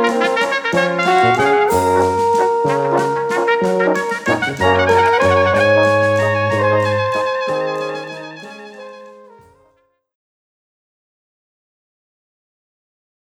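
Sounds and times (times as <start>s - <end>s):
waltz music: 0.0s - 9.7s.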